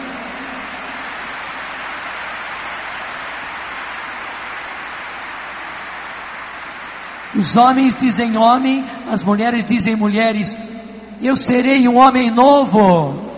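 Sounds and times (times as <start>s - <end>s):
crowd applauding: 0.0s - 9.0s
speech: 7.3s - 13.3s.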